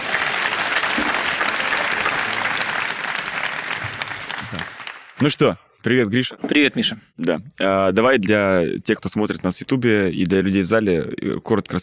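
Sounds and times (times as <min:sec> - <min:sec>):
audience in a hall applauding a guest on a live talk show: 0:00.0 - 0:05.4
speech: 0:05.2 - 0:11.8.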